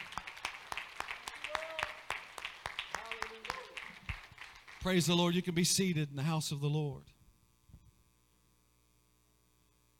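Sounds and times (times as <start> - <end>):
audience clapping hands: 0.0 - 5.5
speech: 4.8 - 7.2.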